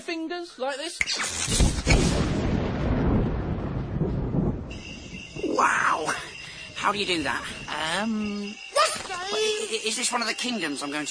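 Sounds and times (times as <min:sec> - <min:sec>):
speech: 0:00.0 - 0:02.4, 0:05.5 - 0:11.0
roll of thunder: 0:01.9 - 0:05.9.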